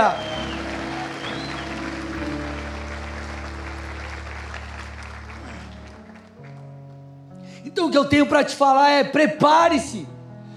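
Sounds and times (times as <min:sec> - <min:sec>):
speech: 0:00.0 - 0:00.3, 0:07.7 - 0:10.1
audience applauding: 0:00.0 - 0:06.8.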